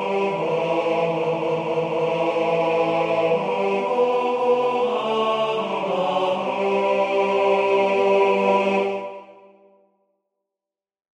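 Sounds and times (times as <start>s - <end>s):
tenor voice singing: 0.0s - 9.6s.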